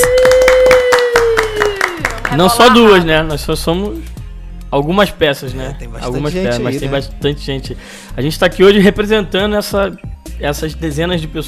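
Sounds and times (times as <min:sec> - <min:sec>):
applause: 0:00.0 - 0:02.8
speech: 0:02.4 - 0:04.1, 0:04.7 - 0:11.4.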